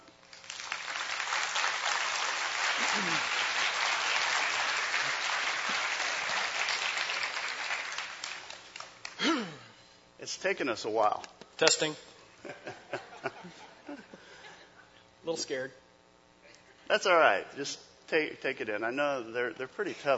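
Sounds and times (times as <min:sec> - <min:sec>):
audience applause welcoming a speaker: 0:00.3 - 0:09.3
laughter: 0:02.7 - 0:03.6, 0:12.4 - 0:14.9
speech: 0:10.3 - 0:12.6, 0:15.3 - 0:15.8, 0:16.9 - 0:20.1.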